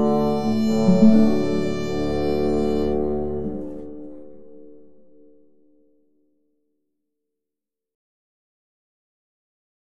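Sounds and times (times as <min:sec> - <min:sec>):
trumpet piece: 0:00.0 - 0:04.4.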